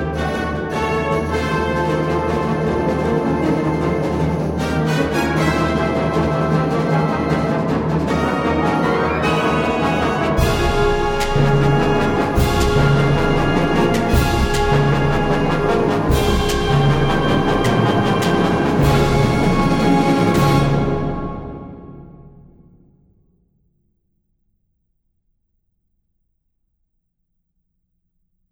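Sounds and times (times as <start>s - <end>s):
fanfare: 0.0s - 22.4s.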